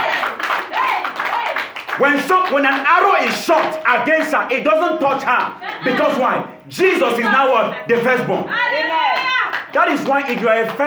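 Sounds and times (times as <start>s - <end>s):
crowd applauding: 0.0s - 6.3s, 8.5s - 10.8s
voices calling out: 0.0s - 10.8s
speech: 2.0s - 9.0s, 9.8s - 10.8s.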